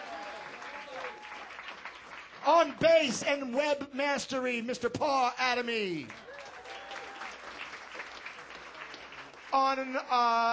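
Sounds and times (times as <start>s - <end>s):
audience applause: 0.0s - 3.1s, 6.0s - 10.4s
speech: 2.5s - 6.2s, 9.6s - 10.5s.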